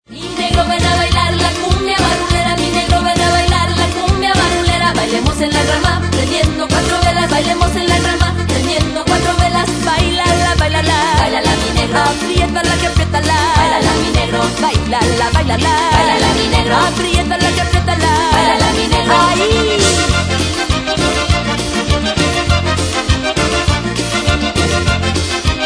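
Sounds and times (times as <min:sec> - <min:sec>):
cumbia music: 0:00.0 - 0:25.6.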